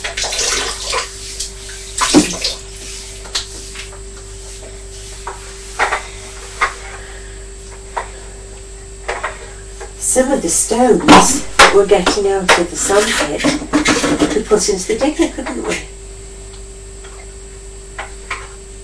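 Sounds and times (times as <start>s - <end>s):
small water splashes and dribbles: 0.0s - 2.6s
faint steady hum: 0.0s - 18.8s
speech: 10.2s - 15.9s.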